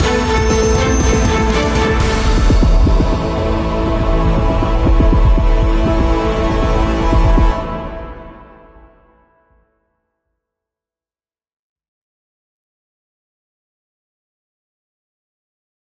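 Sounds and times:
orchestral stinger: 0:00.0 - 0:08.7.

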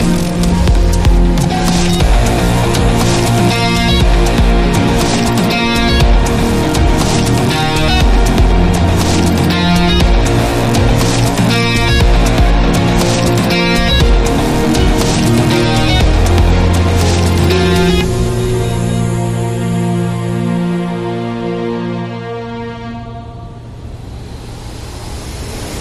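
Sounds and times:
hybrid digital orchestra music: 0:00.0 - 0:23.7.

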